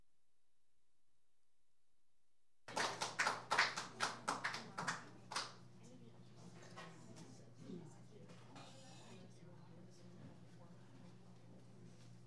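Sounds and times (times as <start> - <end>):
audience applause welcoming a performer at an open mic: 2.7 - 5.6.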